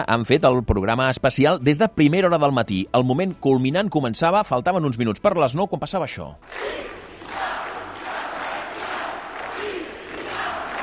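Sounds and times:
speech: 0:00.0 - 0:07.4
large crowd shouting welcome at rally: 0:06.4 - 0:10.8.

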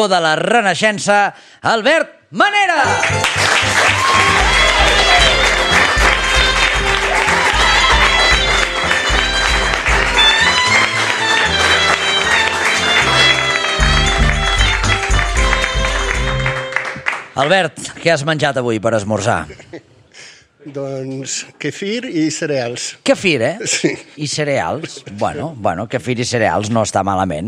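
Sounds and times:
speech: 0:00.0 - 0:04.5, 0:17.4 - 0:19.9, 0:20.6 - 0:27.4
audience applause: 0:02.9 - 0:17.6.

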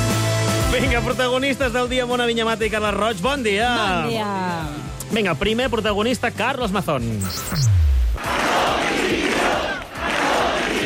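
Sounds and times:
speech: 0:00.8 - 0:08.4
low swooping tone: 0:07.2 - 0:08.3
large protest crowd chanting for resignation: 0:08.2 - 0:10.8.

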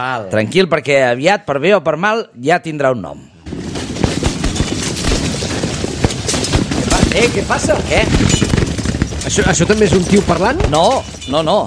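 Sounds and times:
speech: 0:00.0 - 0:03.3, 0:07.1 - 0:08.6, 0:09.3 - 0:11.6
gunshots: 0:03.4 - 0:11.3.

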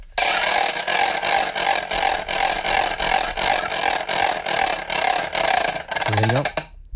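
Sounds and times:
wooden ratchet rattle swung hard: 0:00.2 - 0:06.8
person speaking: 0:06.0 - 0:06.7.

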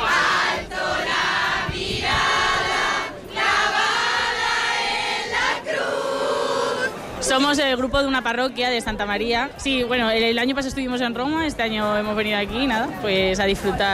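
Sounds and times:
crowd of faithful singing hymns: 0:00.0 - 0:07.3
speech: 0:07.4 - 0:13.9.

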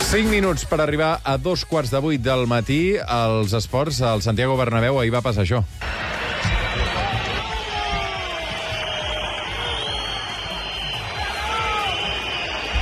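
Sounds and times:
speech: 0:00.1 - 0:06.1
stadium crowd roar: 0:05.8 - 0:12.8
many shrill whistles from the crowd: 0:06.4 - 0:12.8.

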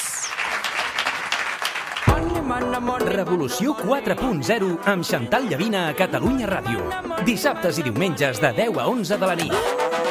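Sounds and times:
audience applause at a special event: 0:00.0 - 0:02.3
speech: 0:02.5 - 0:10.0.

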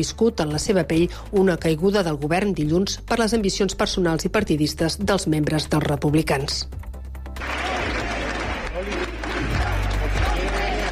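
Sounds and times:
speech: 0:00.0 - 0:08.0
crowd applause: 0:07.4 - 0:10.9
murmuring voices: 0:07.4 - 0:10.9.

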